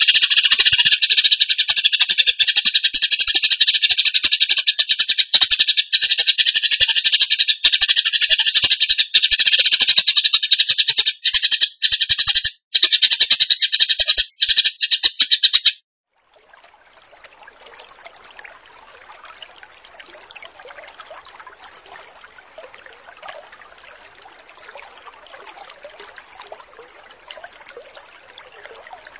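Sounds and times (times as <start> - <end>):
bird song: 0.0 - 15.8.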